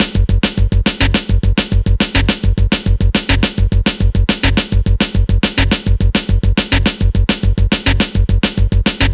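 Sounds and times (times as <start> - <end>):
ragga breakbeat music: 0.0 - 9.1.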